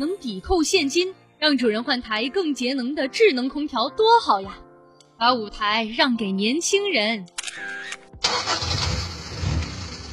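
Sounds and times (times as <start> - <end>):
speech: 0.0 - 4.6, 5.2 - 7.8
old car engine starting and idling: 8.2 - 10.1.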